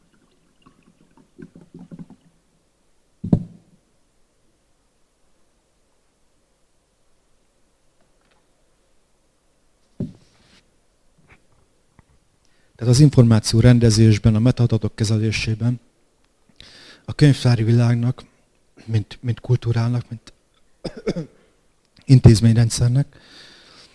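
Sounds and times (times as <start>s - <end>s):
person drinking a glass of water: 0.0s - 2.3s
speech: 12.8s - 15.9s, 17.1s - 21.4s, 22.1s - 23.5s.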